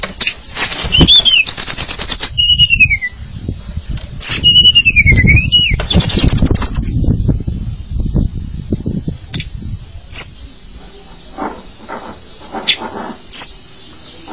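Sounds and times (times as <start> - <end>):
Java sparrow clicking and whistling song: 0.2 - 3.2, 4.2 - 7.0, 10.1 - 10.4, 12.7 - 14.3.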